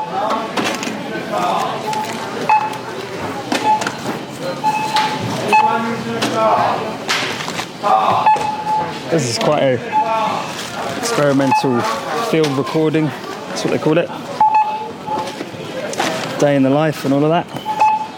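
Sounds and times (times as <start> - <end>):
self-checkout scanner beeps: 0.0 - 6.4, 8.2 - 13.0, 13.6 - 18.1
speech: 6.1 - 7.0, 7.8 - 8.4, 9.1 - 14.3, 16.4 - 17.6.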